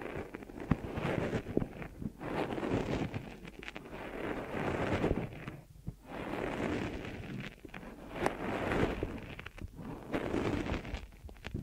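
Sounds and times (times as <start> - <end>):
deep ear massage: 0.0 - 11.6.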